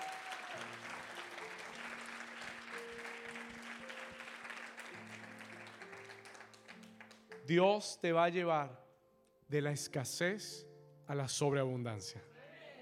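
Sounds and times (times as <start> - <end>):
large audience applauding: 0.0 - 7.5
speech: 7.5 - 8.8, 9.5 - 12.3.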